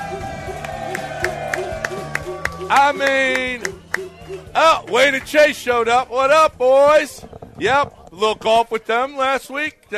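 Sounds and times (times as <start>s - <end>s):
studio audience cheering at a live show: 0.0s - 5.6s
rhythmic clapping: 0.0s - 6.1s
speech: 2.7s - 3.8s, 4.5s - 9.9s.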